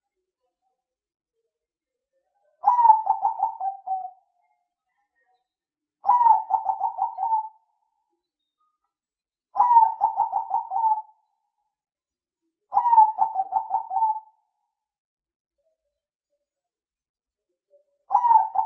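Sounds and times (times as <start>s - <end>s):
spotted dove cooing: 2.6s - 4.2s, 6.0s - 7.6s, 9.6s - 11.1s, 12.7s - 14.3s, 18.1s - 18.6s.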